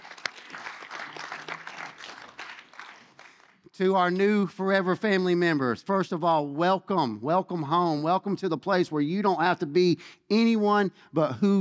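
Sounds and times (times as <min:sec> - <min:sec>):
crowd clapping: 0:00.0 - 0:03.8
speech: 0:03.8 - 0:11.5.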